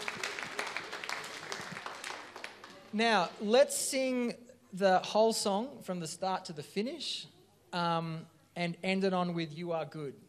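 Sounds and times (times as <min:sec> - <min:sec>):
group applause: 0:00.0 - 0:03.4
speech: 0:02.9 - 0:10.2.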